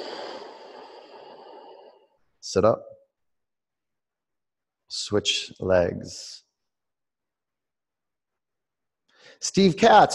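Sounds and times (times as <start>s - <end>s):
person breathing in and out during a guided stretching class: 0.0s - 2.3s
speech: 2.5s - 3.0s, 4.9s - 6.4s, 9.2s - 10.1s.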